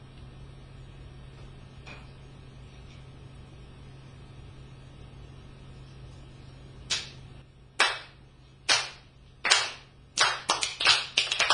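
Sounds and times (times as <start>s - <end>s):
crowd clapping in a slow uneven rhythm: 7.8s - 11.5s.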